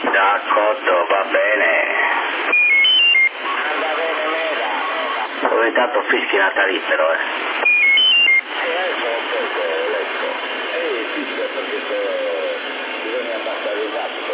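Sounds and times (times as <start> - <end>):
man talking through hissy CB radio channel with echo effect in Sassari Italy: 0.0 - 2.2, 3.6 - 7.3, 8.6 - 14.3
speech: 0.2 - 2.7, 5.5 - 7.5, 11.5 - 14.3
stepped electronic beeps on CB radio transmission: 2.5 - 3.4, 7.6 - 8.4.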